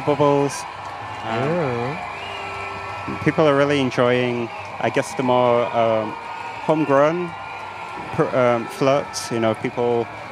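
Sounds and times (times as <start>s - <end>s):
speech: 0.0s - 2.1s, 3.1s - 7.4s, 8.0s - 10.2s
crowd cheering at parade: 0.0s - 10.3s
whistles at parade: 1.1s - 3.4s.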